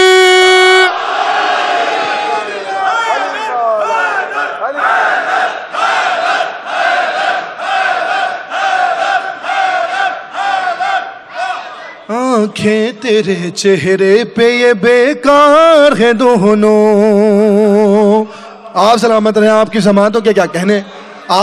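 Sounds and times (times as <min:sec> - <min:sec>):
crowd shouting a religious slogan at a religious gathering: 0:00.0 - 0:12.1
speech: 0:12.6 - 0:21.4.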